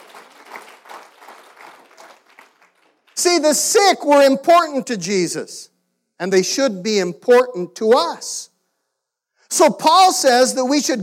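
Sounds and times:
audience applause: 0.0 - 3.2
speech: 3.2 - 8.5, 9.5 - 11.0.

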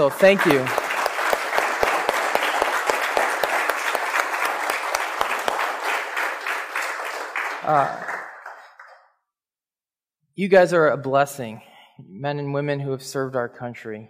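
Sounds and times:
speech: 0.0 - 0.8, 7.7 - 8.1, 10.4 - 14.0
audience applause: 0.0 - 9.1.

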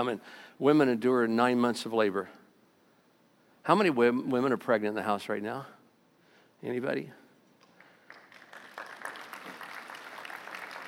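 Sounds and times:
speech: 0.0 - 2.4, 3.6 - 5.8, 6.6 - 7.2
audience clapping: 7.6 - 10.8.

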